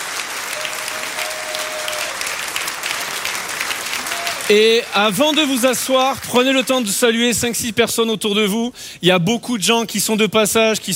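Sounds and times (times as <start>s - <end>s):
audience applauding: 0.0s - 7.2s
speech: 4.5s - 10.9s.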